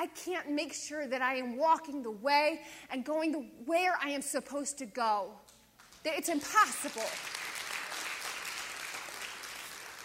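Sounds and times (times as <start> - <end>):
speech: 0.0 - 7.4
clapping: 5.8 - 10.0.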